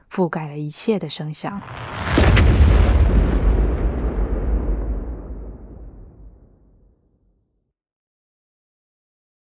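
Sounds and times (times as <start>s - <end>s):
speech: 0.2s - 3.0s
dense explosions of an air raid: 1.5s - 7.3s.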